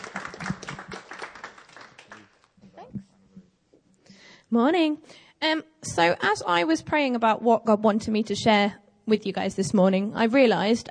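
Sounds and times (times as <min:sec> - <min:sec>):
crowd applauding: 0:00.0 - 0:02.5
speech: 0:04.5 - 0:10.8.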